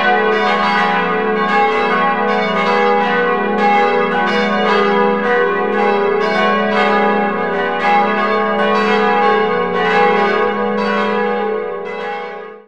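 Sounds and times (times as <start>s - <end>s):
church bells ringing: 0.0s - 12.6s.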